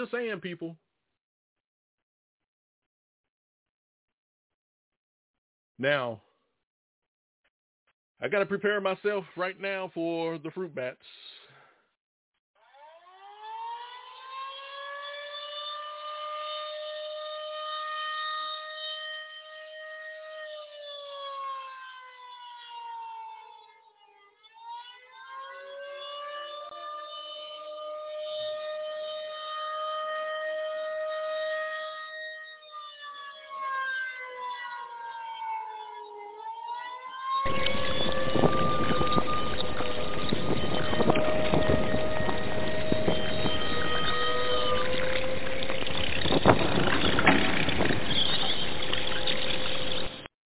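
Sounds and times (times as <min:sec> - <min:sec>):
speech: 0:00.0 - 0:00.9, 0:05.8 - 0:06.2, 0:08.2 - 0:11.2
wailing siren alarm: 0:12.6 - 0:50.3.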